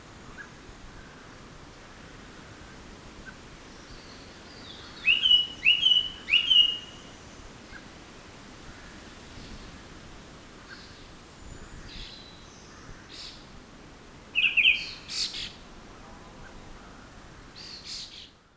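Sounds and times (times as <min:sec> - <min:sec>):
hiss: 0:00.0 - 0:18.5
bird whistling song: 0:05.0 - 0:07.1, 0:14.4 - 0:15.4.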